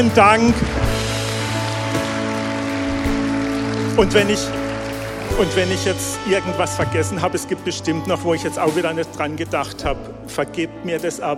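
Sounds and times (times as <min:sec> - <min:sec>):
speech: 0:00.0 - 0:00.9, 0:04.0 - 0:04.6, 0:05.3 - 0:11.3
audience applause: 0:00.7 - 0:06.8.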